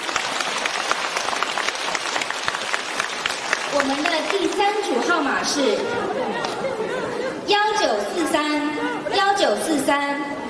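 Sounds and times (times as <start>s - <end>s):
crowd applauding: 0.0s - 6.6s
speech: 3.8s - 10.4s
laughter: 5.0s - 9.4s.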